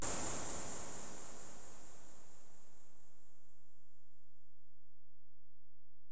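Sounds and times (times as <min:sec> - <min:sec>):
Alesis DM-PRO hi-hat: 0:00.0 - 0:03.6.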